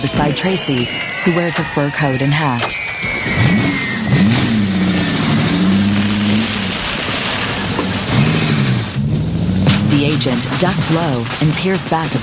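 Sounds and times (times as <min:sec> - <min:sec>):
speech: 0:00.0 - 0:04.2, 0:10.0 - 0:12.2
car engine revving: 0:03.2 - 0:10.9.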